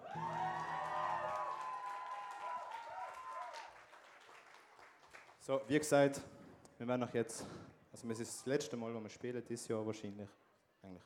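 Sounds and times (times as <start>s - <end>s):
audience cheering: 0.0s - 3.9s
audience applause: 0.0s - 5.4s
speech: 5.5s - 11.0s.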